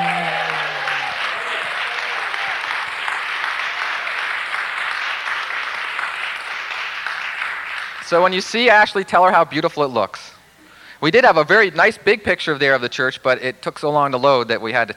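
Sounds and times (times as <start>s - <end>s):
audience applause: 0.0s - 8.0s
speech: 8.1s - 10.4s, 11.0s - 14.9s.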